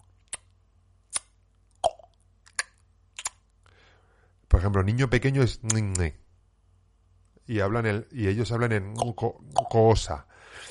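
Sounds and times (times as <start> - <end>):
tongue clicks like Xhosa click consonants: 0.0 - 3.6, 9.0 - 9.8
speech: 4.6 - 6.2, 7.5 - 10.7.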